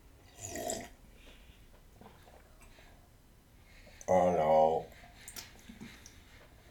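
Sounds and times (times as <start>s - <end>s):
person sipping water from a glass: 0.3s - 1.4s.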